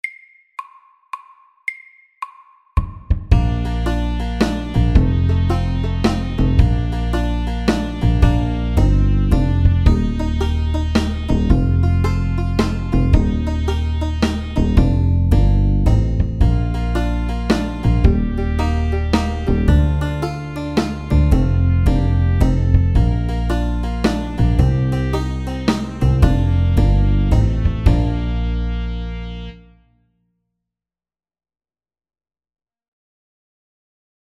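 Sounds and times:
medium country shuffle beat at 110 BPM: 0:03.1 - 0:29.2.

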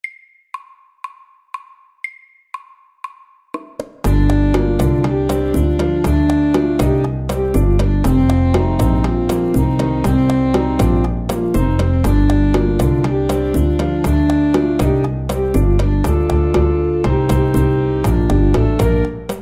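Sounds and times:
driving saxophones: 0:04.1 - 0:19.2.

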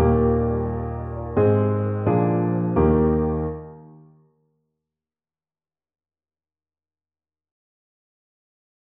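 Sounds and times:
ecossaise dance piece: 0:00.0 - 0:03.9.

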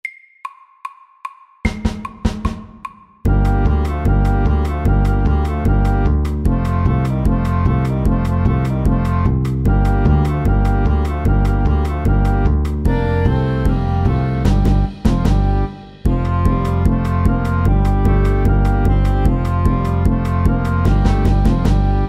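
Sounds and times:
fast Balkan stomp music: 0:01.7 - 0:22.0.

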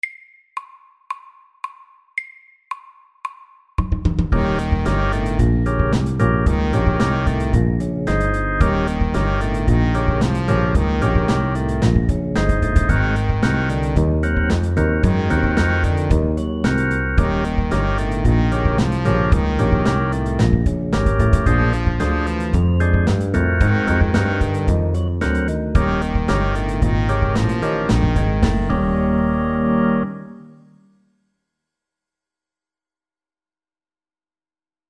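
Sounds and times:
12 bar blues at medium tempo 112: 0:04.3 - 0:30.4.

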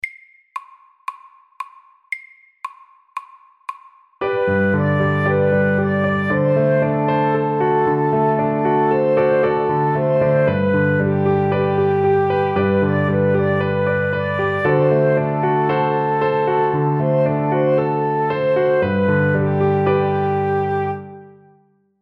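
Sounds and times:
Welsh melody: 0:04.3 - 0:21.2.

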